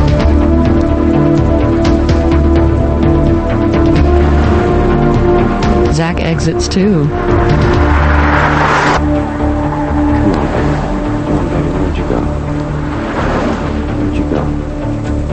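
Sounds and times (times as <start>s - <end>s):
car engine hum: 0.0s - 15.3s
road noise rush: 0.0s - 15.3s
speech: 6.4s - 7.6s.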